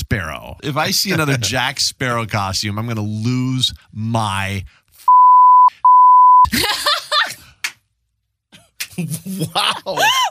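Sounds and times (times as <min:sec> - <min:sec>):
speech: 0:00.5 - 0:04.8, 0:06.4 - 0:06.9, 0:09.0 - 0:10.2
censor bleeps over a swear word: 0:05.1 - 0:06.5
people laughing: 0:06.5 - 0:07.5, 0:08.6 - 0:10.2.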